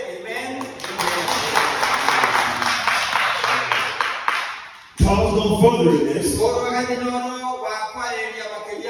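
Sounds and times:
audience clapping: 0.3 - 5.0
speech: 5.4 - 8.3.

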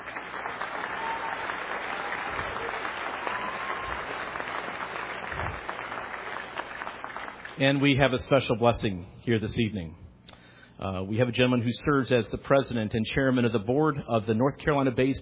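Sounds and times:
lecture audience applause welcoming a speaker to the podium: 0.0 - 8.0
speech: 7.6 - 10.0, 10.8 - 15.2.

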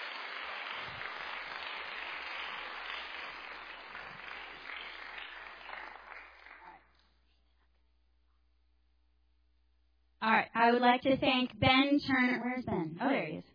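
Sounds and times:
audience applause for a choir: 0.0 - 7.0
speech: 10.3 - 13.5.

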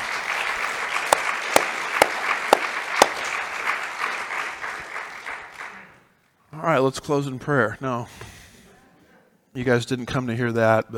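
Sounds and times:
audience applause: 0.0 - 6.1
speech: 6.6 - 8.3, 9.6 - 10.9.

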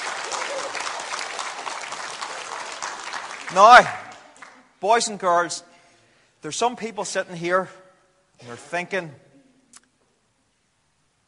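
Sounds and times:
audience clapping: 0.0 - 5.1
speech: 3.5 - 4.0, 4.8 - 5.7, 6.4 - 7.8, 8.4 - 9.2.

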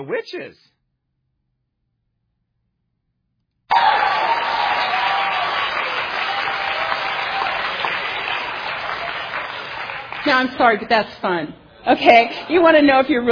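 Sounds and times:
speech: 0.0 - 0.8, 10.2 - 13.2
audience clapping: 3.7 - 10.8.

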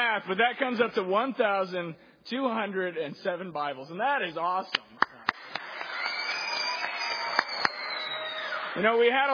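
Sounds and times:
speech: 0.0 - 5.0, 8.8 - 9.3
audience applause: 5.2 - 9.3.

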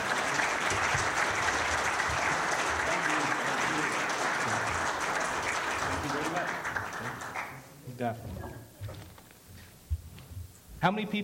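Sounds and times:
audience applause: 0.0 - 7.7
speech: 8.0 - 8.4, 10.8 - 11.2.

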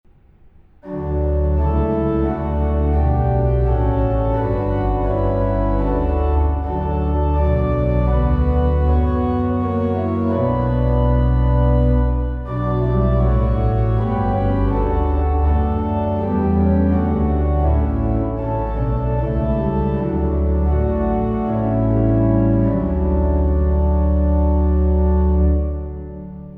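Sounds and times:
organ: 0.8 - 26.5.

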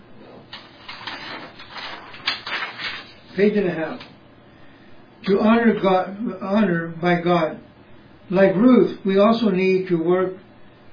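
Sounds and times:
paper rustling and crinkling: 0.3 - 4.2
speech: 3.4 - 4.1, 5.3 - 7.7, 8.3 - 10.4.

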